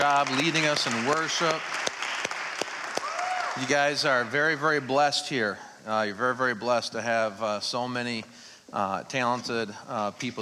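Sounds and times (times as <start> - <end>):
speech: 0.0 - 1.9, 3.6 - 10.3
audience applause for the worship team: 0.0 - 5.1.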